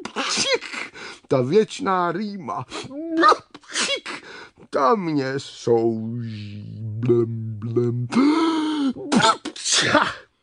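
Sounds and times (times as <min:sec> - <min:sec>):
voice acting out a loud sneeze: 0:00.0 - 0:01.0, 0:02.8 - 0:04.3, 0:08.9 - 0:10.3
speech: 0:01.3 - 0:03.5, 0:04.7 - 0:08.5, 0:09.2 - 0:10.2.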